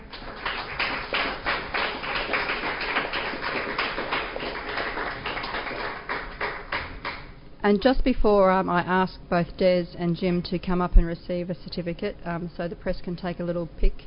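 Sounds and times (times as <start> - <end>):
round of applause: 0.0 - 7.3
speech: 7.6 - 14.0.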